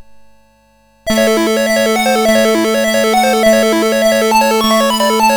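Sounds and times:
MOS6581R4 SID chip music: 0:01.1 - 0:05.3.

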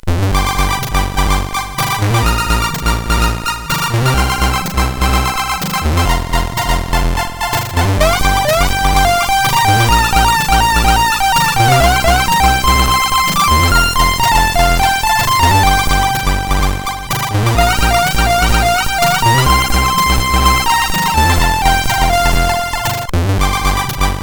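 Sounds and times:
SID CSG8580R5 chip music: 0:00.0 - 0:24.2.

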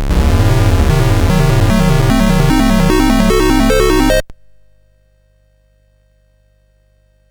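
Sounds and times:
SID chiptune music on CSG8580R5 chip: 0:00.1 - 0:04.3.

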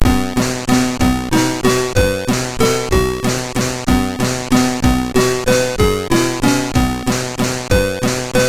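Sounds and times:
folk music on MOS6581R3 sound chip: 0:00.0 - 0:08.4.

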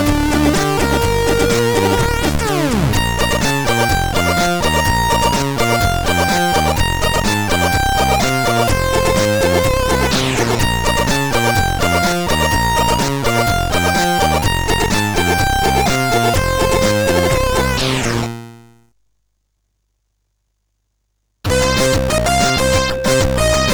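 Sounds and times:
rhythmic beat on CSG8580R5: 0:00.0 - 0:17.8, 0:21.5 - 0:23.7.

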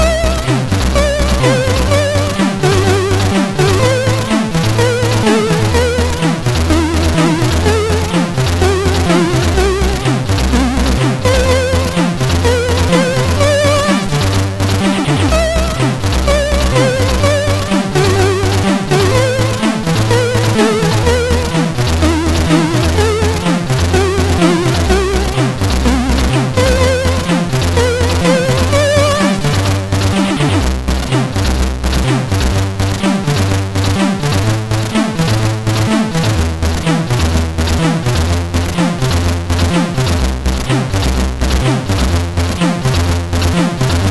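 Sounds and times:
national anthem on SID CSG8580R5 sound chip: 0:00.0 - 0:44.0.

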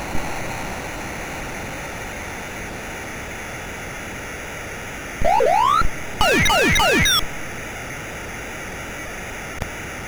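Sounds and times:
big funk chiptune on MOS6581R4 sound chip: 0:05.2 - 0:07.3.

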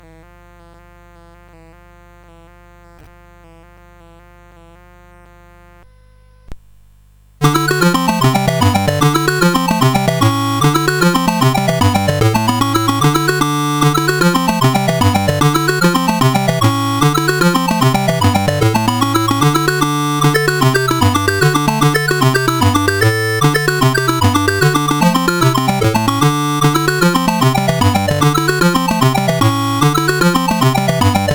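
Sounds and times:
Commodore CSG8580R5 chiptune jig: 0:07.4 - 0:31.3.

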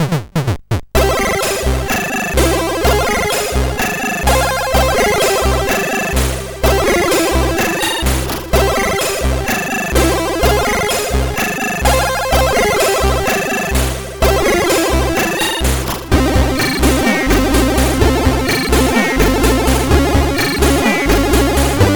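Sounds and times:
SID chip music from CSG8580R5: 0:01.0 - 0:21.9.

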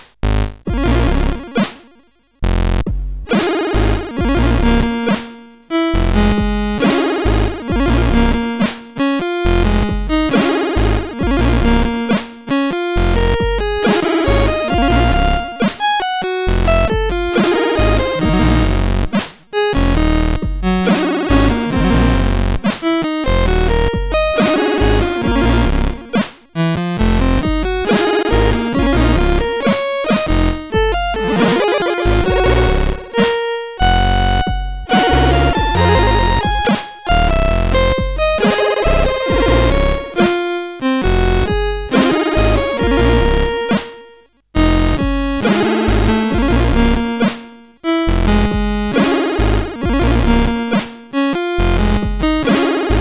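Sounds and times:
blues on CSG8580R5 sound chip: 0:00.5 - 0:01.9, 0:02.9 - 0:52.9.

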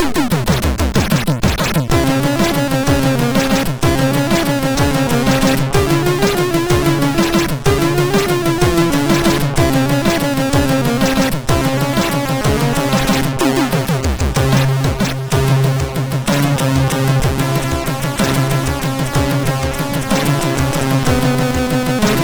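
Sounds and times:
Iranian music on a SID MOS6581R3 chip: 0:00.0 - 0:22.2.

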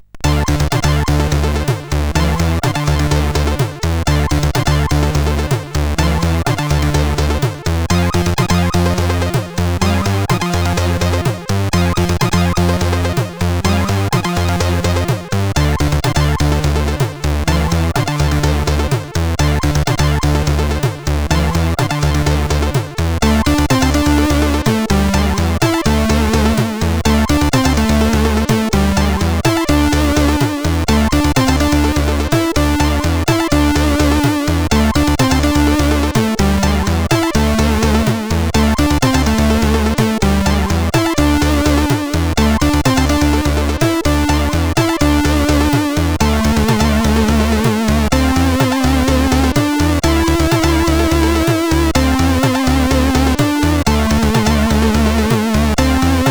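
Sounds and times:
intro song: 0:00.0 - 0:56.2.

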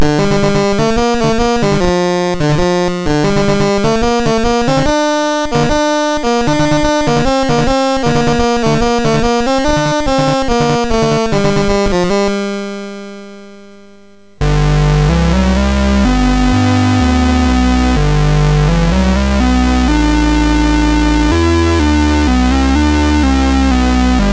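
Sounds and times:
MOS6581R3 chip game music: 0:00.0 - 0:12.4, 0:14.4 - 0:24.3.

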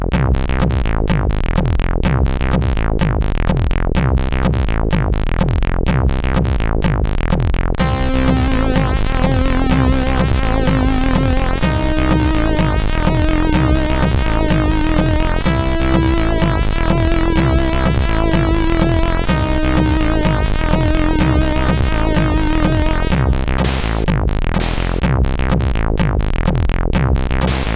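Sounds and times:
house music on SID CSG8580R5: 0:00.1 - 0:27.7.

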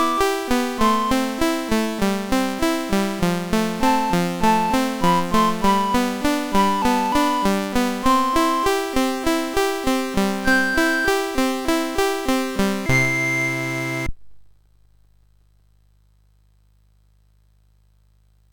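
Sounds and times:
folk song on MOS 6581 R3 chip: 0:00.0 - 0:14.1.

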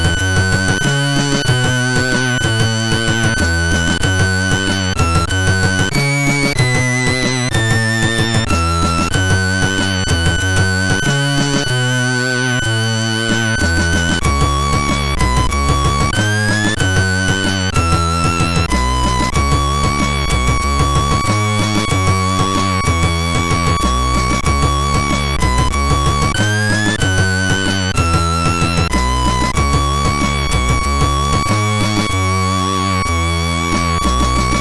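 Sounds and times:
SID MOS6581R3 chip noise: 0:00.0 - 0:34.5.

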